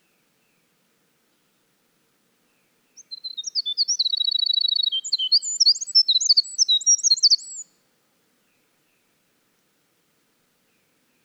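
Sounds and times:
Winter wren singing: 3.0 - 7.6.

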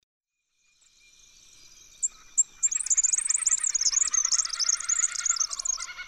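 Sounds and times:
Red-backed fairywren introductory chips: 2.4 - 5.9.

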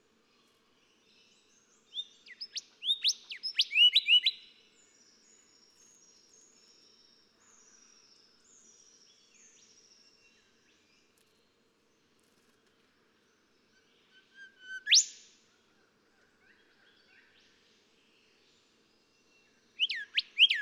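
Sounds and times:
golden whistler song: 1.9 - 4.5, 14.1 - 15.3, 19.8 - 20.6.

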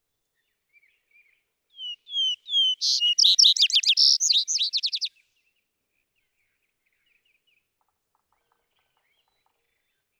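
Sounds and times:
Vesper sparrow singing: 1.8 - 5.1.

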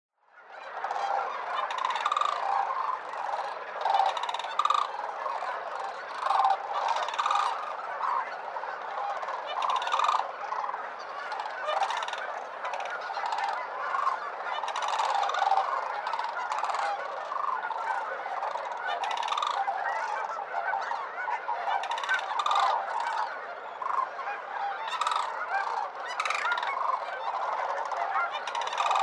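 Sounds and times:
sandhill cranes giving rolling rattling calls: 0.7 - 29.0.

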